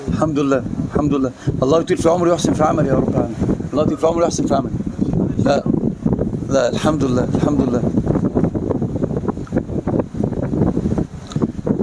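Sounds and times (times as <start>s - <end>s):
loud electric fan running: 0.0s - 11.8s
speech: 0.1s - 4.8s, 5.4s - 5.7s, 6.5s - 8.0s.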